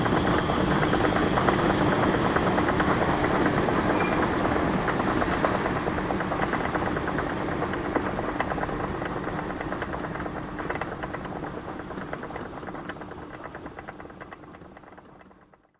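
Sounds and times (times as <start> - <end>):
escalator at Friesenplatz subway station in Cologne: 0.0 - 15.4.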